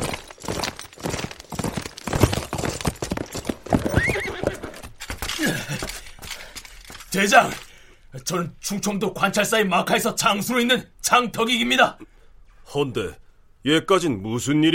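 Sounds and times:
horse galloping toward Onyang: 0.0s - 7.1s
horse whinnying: 3.6s - 5.4s
speech: 7.1s - 12.1s, 12.7s - 14.7s.

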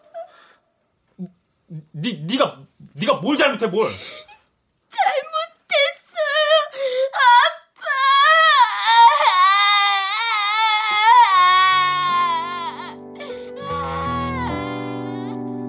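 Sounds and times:
speech: 2.0s - 4.1s
person crying loudly with choked sobs and wailing: 3.8s - 15.4s.

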